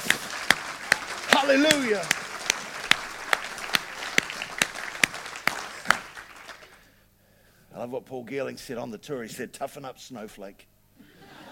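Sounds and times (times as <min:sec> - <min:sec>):
audience clapping: 0:00.0 - 0:06.9
speech: 0:01.4 - 0:02.2, 0:07.8 - 0:10.7.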